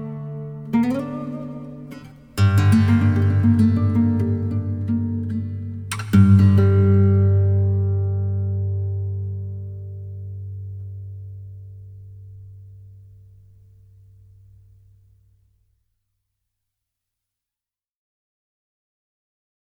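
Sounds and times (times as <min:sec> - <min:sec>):
guitar music: 0:00.0 - 0:15.1.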